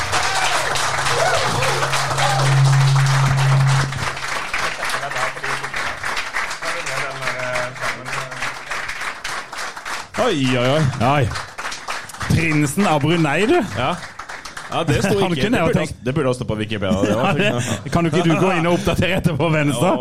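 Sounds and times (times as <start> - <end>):
audience applause: 0.0 - 15.8
speech: 10.3 - 11.5, 12.4 - 14.1, 14.7 - 19.9
laughter: 14.8 - 15.8, 16.8 - 19.4.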